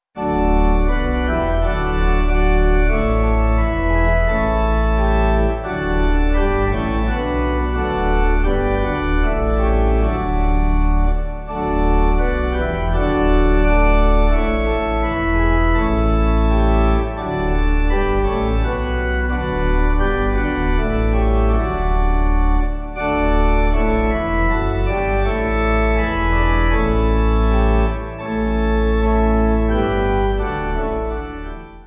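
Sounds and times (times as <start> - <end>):
pipe organ playing a hymn: 0.2 - 31.8.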